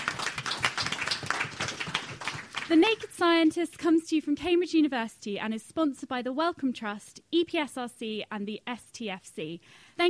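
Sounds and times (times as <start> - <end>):
crowd applauding: 0.0 - 2.9
speech: 2.7 - 10.0.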